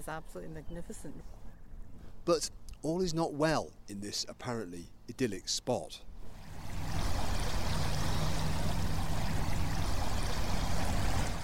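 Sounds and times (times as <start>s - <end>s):
speech: 0.0s - 1.5s, 2.3s - 6.1s
constant repetitive low-frequency hum: 6.1s - 11.4s
flowing splashing water: 6.2s - 11.4s.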